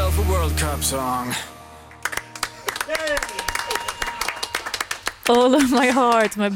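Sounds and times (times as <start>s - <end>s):
speech: 0.4s - 1.5s, 5.3s - 6.5s
person applauding: 2.0s - 6.5s.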